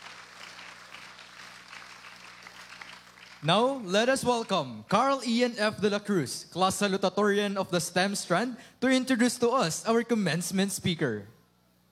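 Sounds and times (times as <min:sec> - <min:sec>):
audience applause: 0:00.0 - 0:03.5
speech: 0:03.4 - 0:11.4.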